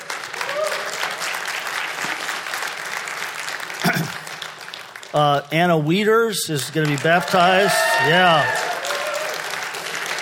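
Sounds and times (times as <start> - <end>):
audience cheering and applauding: 0.0 - 5.2, 6.7 - 10.2
speech: 5.2 - 8.7
voices whooping: 7.2 - 9.6.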